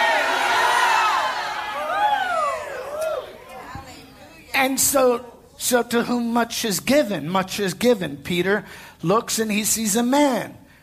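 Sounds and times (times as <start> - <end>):
audience shouting hallelujah: 0.0 - 3.6
speech: 4.6 - 10.6.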